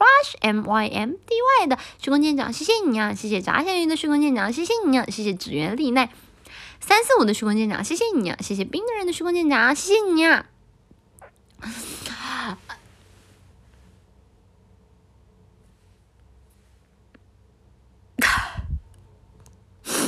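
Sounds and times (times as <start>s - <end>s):
speech: 0.0s - 6.2s, 6.8s - 10.5s, 11.6s - 12.7s
sneeze: 18.2s - 18.7s, 19.9s - 20.0s.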